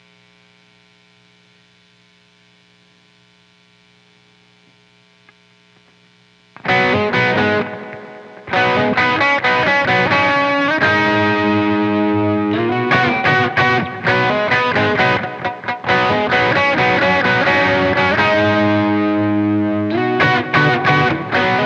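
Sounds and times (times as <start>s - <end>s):
guitar: 6.6s - 21.6s.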